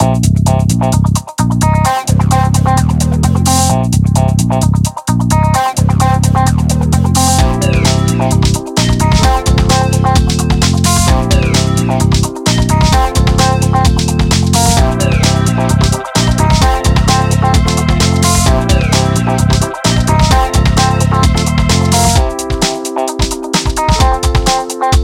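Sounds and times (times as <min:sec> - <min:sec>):
music: 0:00.0 - 0:25.0.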